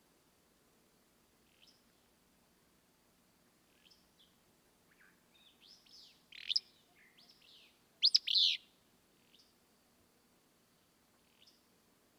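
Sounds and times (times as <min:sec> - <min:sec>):
low background hiss: 0:00.0 - 0:12.1
Willow flycatcher song: 0:08.0 - 0:08.6.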